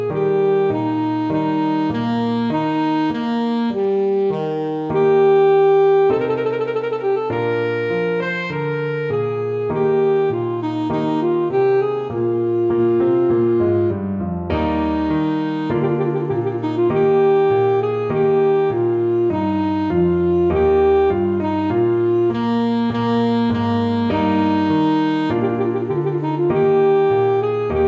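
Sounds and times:
saxophone: 0:00.0 - 0:27.8
trumpet piece: 0:00.0 - 0:27.8.

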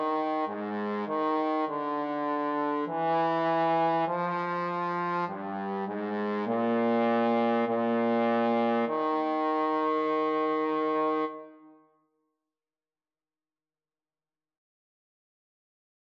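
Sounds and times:
trombone duet: 0:00.0 - 0:11.6.

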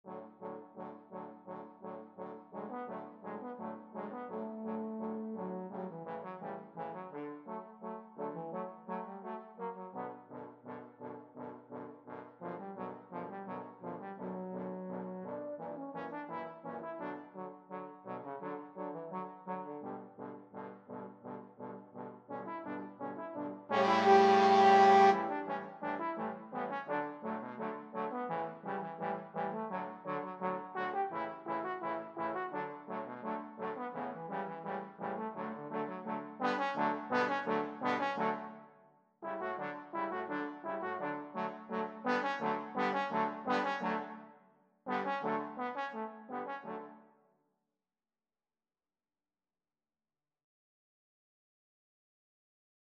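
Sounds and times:
trombone quartet: 0:00.1 - 0:38.6, 0:39.3 - 0:44.2, 0:44.9 - 0:47.0.

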